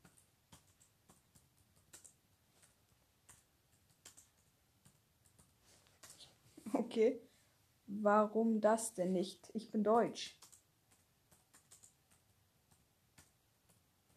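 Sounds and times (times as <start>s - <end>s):
typing a message on a computer keyboard: 0.0s - 6.3s, 10.2s - 14.1s
speech: 6.7s - 7.3s, 7.9s - 10.4s.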